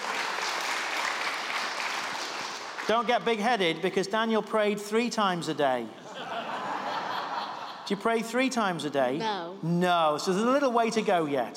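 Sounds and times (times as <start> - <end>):
group applause: 0.0 - 3.4
speech: 2.9 - 6.0, 7.9 - 11.5
laughter: 5.9 - 8.2.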